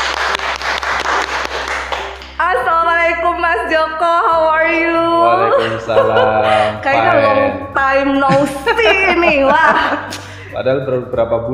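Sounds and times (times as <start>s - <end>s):
audience applause welcoming a guest onto an Indonesian talk show: 0.0s - 2.4s
speech: 3.5s - 11.5s
laughter: 5.4s - 7.4s, 8.3s - 10.8s.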